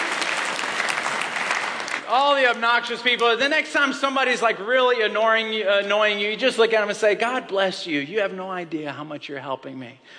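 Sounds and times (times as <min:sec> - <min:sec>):
audience round of applause: 0:00.0 - 0:03.3
speech: 0:02.1 - 0:10.1.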